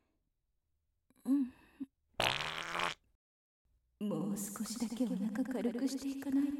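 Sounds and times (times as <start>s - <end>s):
fart: 2.2s - 3.0s
speech: 4.0s - 6.5s.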